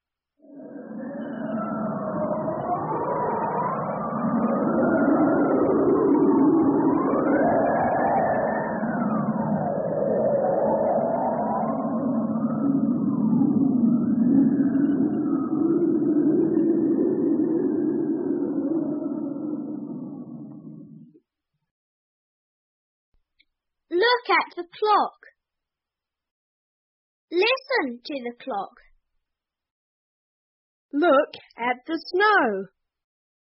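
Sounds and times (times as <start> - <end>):
wind blowing: 0.6 - 21.1
speech: 5.2 - 8.2, 24.4 - 25.3, 27.3 - 28.8, 30.9 - 32.8.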